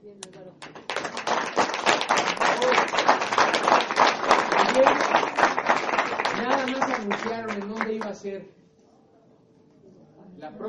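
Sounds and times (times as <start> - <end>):
audience applause: 0.7 - 8.2
speech: 8.0 - 8.6.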